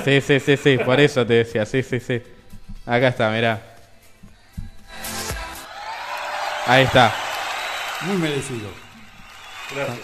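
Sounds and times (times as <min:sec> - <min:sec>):
speech: 0:00.0 - 0:03.7, 0:06.7 - 0:07.2, 0:08.0 - 0:08.8, 0:09.7 - 0:10.0
applause: 0:05.7 - 0:10.0.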